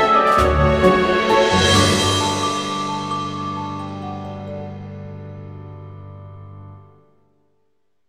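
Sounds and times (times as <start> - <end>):
funny AI-generated wedding music: 0.0 - 6.4.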